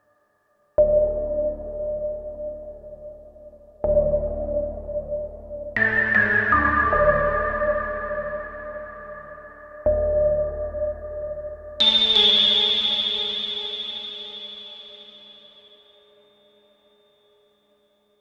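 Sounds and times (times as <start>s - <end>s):
Juno 106 synthesizer: 0.8s - 17.5s.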